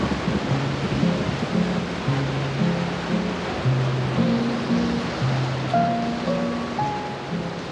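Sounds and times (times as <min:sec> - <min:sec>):
driving rain in a hurricane: 0:00.0 - 0:07.6
hurricane wind roaring: 0:00.0 - 0:07.6
faint low musical tones: 0:00.1 - 0:07.6.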